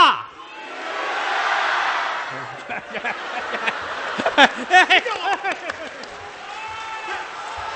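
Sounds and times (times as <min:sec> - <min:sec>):
audience at a Chinese crosstalk comedy show shouting: 0:00.0 - 0:07.7
scattered laughter: 0:02.3 - 0:06.1.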